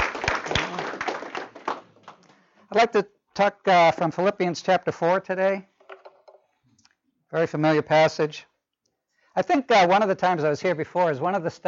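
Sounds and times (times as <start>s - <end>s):
hand claps during a sermon: 0.0s - 2.3s
speech: 2.7s - 5.7s, 7.3s - 8.5s, 9.4s - 11.6s.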